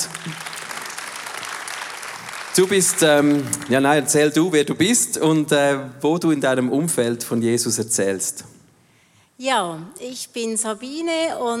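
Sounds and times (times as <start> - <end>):
audience applause: 0.0 - 4.2
speech: 0.2 - 0.5, 2.6 - 8.6, 9.4 - 11.5.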